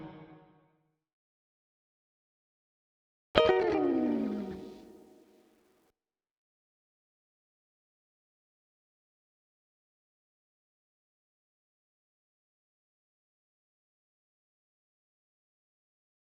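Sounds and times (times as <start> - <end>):
funk music: 3.4 - 5.1.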